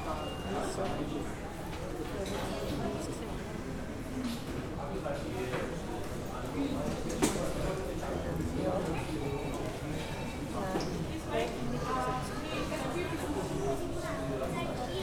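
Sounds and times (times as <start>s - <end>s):
murmur of many voices at a Vienna Airport boarding area: 0.0s - 15.0s.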